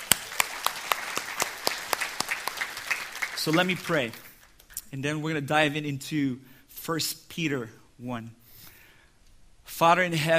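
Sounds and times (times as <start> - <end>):
scattered applause: 0.0 - 4.6
group clapping in rhythm: 0.0 - 4.8
speech: 3.4 - 4.3, 4.9 - 8.4, 9.8 - 10.3.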